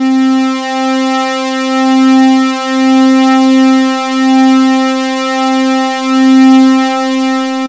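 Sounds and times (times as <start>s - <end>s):
raw analog synth multisamples: 0.0s - 7.6s.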